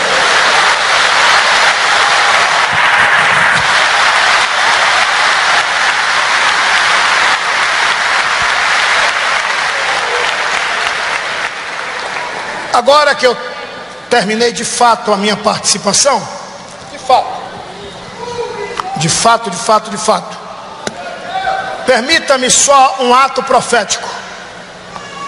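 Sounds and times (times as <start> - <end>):
audience applauding: 0.0 - 12.8
speech: 12.8 - 13.4, 14.1 - 16.4, 17.1 - 17.3, 19.0 - 20.4, 21.9 - 24.2.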